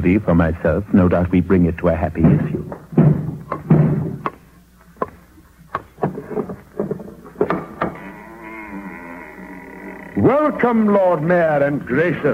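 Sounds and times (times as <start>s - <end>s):
speech: 0.0s - 2.8s, 10.3s - 12.3s
hard knocks on a door: 3.0s - 4.3s.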